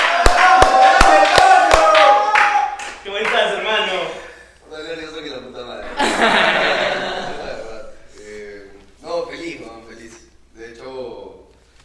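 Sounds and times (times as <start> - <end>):
applause: 0.0 - 3.8
laughter: 5.8 - 8.6.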